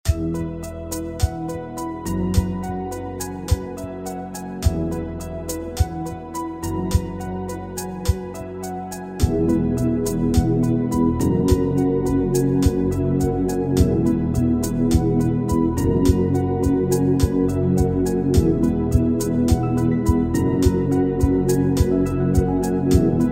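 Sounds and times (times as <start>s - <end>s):
romantic music: 0.0s - 23.3s.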